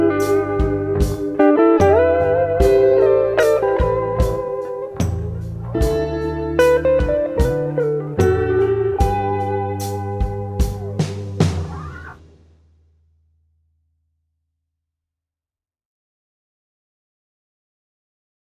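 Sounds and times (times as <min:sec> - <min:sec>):
acoustic guitar backing track: 0:00.0 - 0:12.2.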